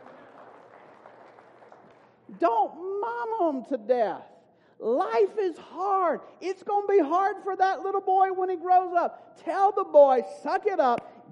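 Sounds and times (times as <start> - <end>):
audience clapping: 0.0 - 2.3
speech: 2.3 - 11.3.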